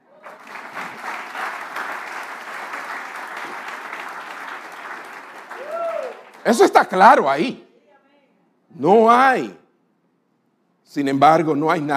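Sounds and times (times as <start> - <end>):
audience applause: 0.0 - 6.8
speech: 6.4 - 7.6, 8.8 - 9.6, 10.9 - 11.9.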